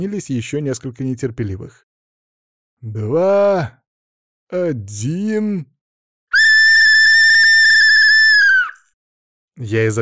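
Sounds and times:
speech: 0:00.0 - 0:01.9, 0:02.8 - 0:03.8, 0:04.5 - 0:05.7, 0:09.6 - 0:10.0
loud shrill whistle blast: 0:06.3 - 0:08.8.

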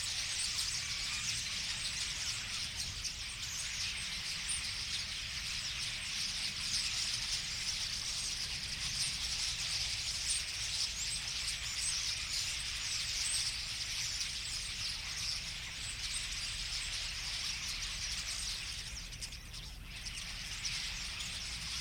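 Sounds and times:
Common starling flock twittering: 0:00.0 - 0:21.8.

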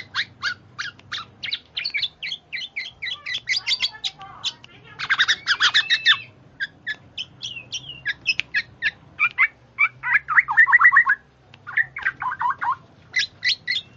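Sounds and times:
bird chirping calls: 0:00.0 - 0:13.9.

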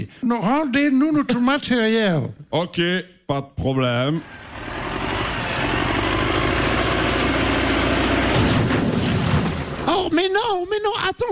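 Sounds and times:
speech: 0:00.0 - 0:04.4, 0:11.1 - 0:11.3
heavy mechanical rumble: 0:04.2 - 0:09.9
BMW car metal crunching: 0:08.2 - 0:10.1.

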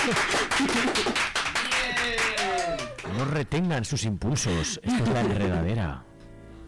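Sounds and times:
laughter: 0:00.0 - 0:01.2, 0:02.4 - 0:03.5, 0:04.3 - 0:06.0
speech: 0:00.0 - 0:01.3, 0:03.2 - 0:06.1
hand clapping: 0:00.0 - 0:03.3.

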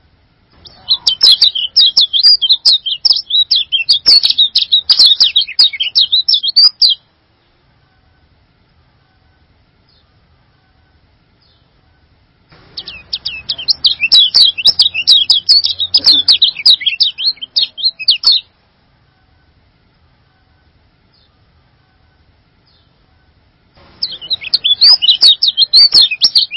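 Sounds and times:
bird song: 0:00.6 - 0:07.6, 0:11.4 - 0:11.8, 0:12.6 - 0:18.5, 0:22.6 - 0:23.0, 0:23.8 - 0:26.5.

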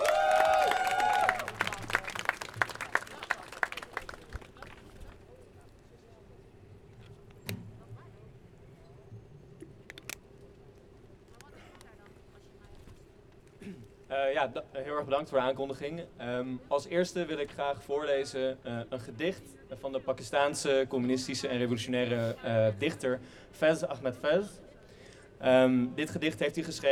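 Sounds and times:
crowd applauding a speaker at a February Strike commemoration: 0:00.0 - 0:05.3
speech: 0:14.4 - 0:24.6, 0:25.4 - 0:26.9.

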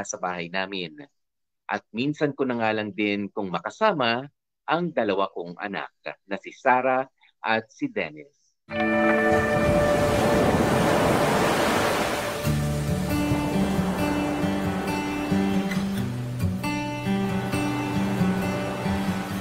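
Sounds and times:
speech: 0:00.0 - 0:09.8
steady melodic music with held tones: 0:08.7 - 0:11.0, 0:11.8 - 0:19.3
sea surf at a beach at sunset: 0:08.7 - 0:19.3.

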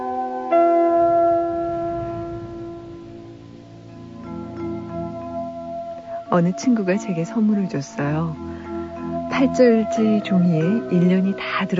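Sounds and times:
large bell tolling: 0:00.0 - 0:07.2
speech: 0:06.3 - 0:08.5, 0:09.3 - 0:11.7.

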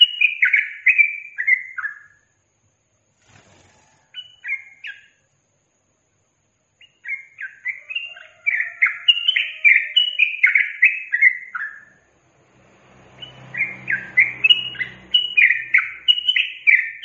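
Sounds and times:
yellow-vented bulbul singing: 0:00.0 - 0:02.4, 0:03.2 - 0:05.3, 0:06.7 - 0:12.2, 0:13.1 - 0:17.0.

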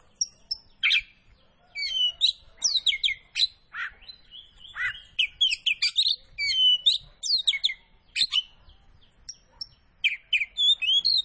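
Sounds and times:
Oriental magpie-robin singing vigorously: 0:00.0 - 0:11.2.

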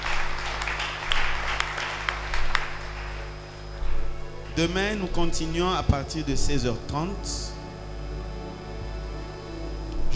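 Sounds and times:
church congregation applauding during a French-language service: 0:00.0 - 0:03.6
low constant hum: 0:00.0 - 0:10.1
speech: 0:04.6 - 0:07.5.

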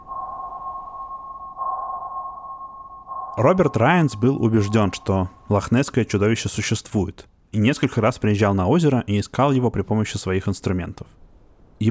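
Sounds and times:
sonar ping sound effect, high electronic tone: 0:00.0 - 0:05.9
faint low rumble: 0:00.0 - 0:07.7
speech: 0:03.4 - 0:11.2.

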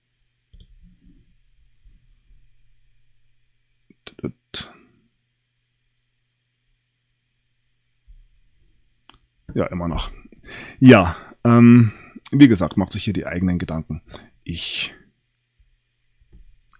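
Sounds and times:
steady hum: 0:00.0 - 0:16.7
computer mouse clicks: 0:00.5 - 0:01.0
speech: 0:04.2 - 0:04.7, 0:09.6 - 0:15.0.

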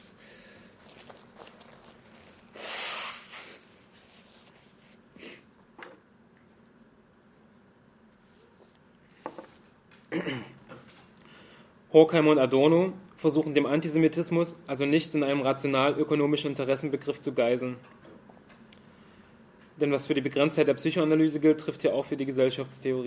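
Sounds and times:
nose blowing: 0:02.4 - 0:03.9
speech: 0:10.2 - 0:10.6, 0:11.9 - 0:18.0, 0:19.8 - 0:23.0.

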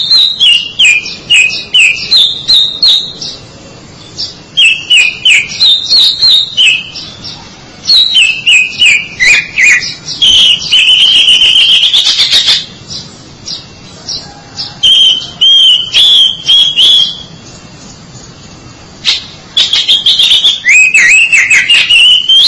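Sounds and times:
Oriental magpie-robin whistled song: 0:00.0 - 0:22.4.

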